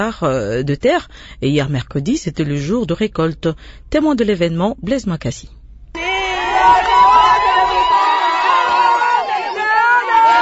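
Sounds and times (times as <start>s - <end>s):
speech: 0.0s - 5.6s
crowd cheering with joy at harvest: 6.0s - 10.3s.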